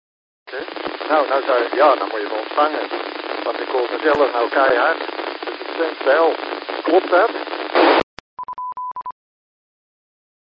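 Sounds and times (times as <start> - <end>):
speech: 0.5 - 5.2, 5.8 - 7.3
incoming radio signal tone: 0.5 - 8.1.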